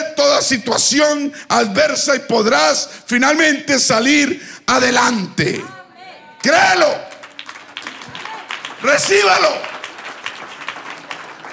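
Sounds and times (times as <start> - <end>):
speech: 0.4 - 5.8, 6.4 - 7.1, 8.8 - 9.7
scattered applause: 6.4 - 11.5.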